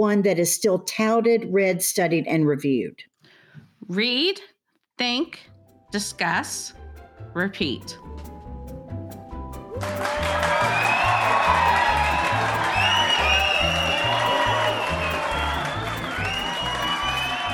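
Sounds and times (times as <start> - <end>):
speech: 0.0 - 3.1, 3.9 - 8.3
crowd cheering and applauding: 9.7 - 17.5
whoops and whistles: 10.5 - 17.5.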